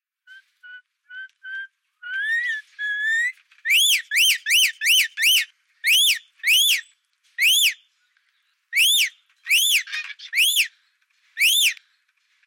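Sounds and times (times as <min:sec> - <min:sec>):
calls: 0:00.3 - 0:06.8, 0:07.4 - 0:07.8, 0:08.7 - 0:10.7, 0:11.4 - 0:11.8.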